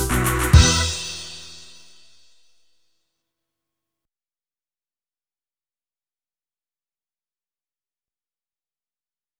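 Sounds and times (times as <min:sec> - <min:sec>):
Hammond B3 organ: 0:00.0 - 0:01.8.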